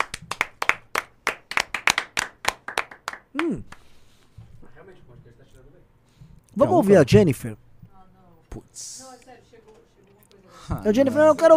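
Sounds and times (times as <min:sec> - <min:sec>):
small audience clapping: 0:00.0 - 0:03.9
speech: 0:03.4 - 0:03.8, 0:06.6 - 0:07.6, 0:08.8 - 0:09.2, 0:10.7 - 0:11.5.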